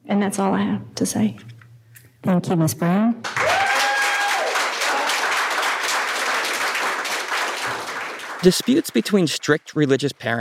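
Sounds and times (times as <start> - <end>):
speech: 0.2 - 1.5, 2.2 - 3.4, 8.4 - 10.4
audience applause in a video: 3.3 - 10.0.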